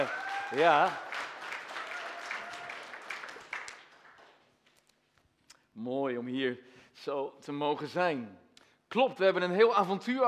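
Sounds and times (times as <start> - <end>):
speech: 0.0 - 1.1, 5.8 - 10.2
audience applause: 0.0 - 4.5.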